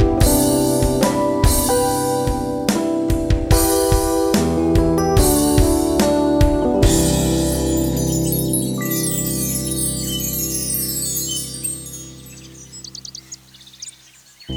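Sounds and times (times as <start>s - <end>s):
Rhodes electric piano ambient music: 0.0s - 13.9s.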